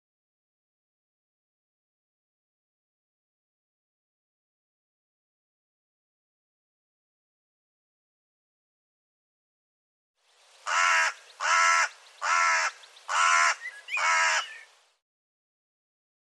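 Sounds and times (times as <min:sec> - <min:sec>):
bird calling with coarse rasping caws: 0:10.6 - 0:14.8.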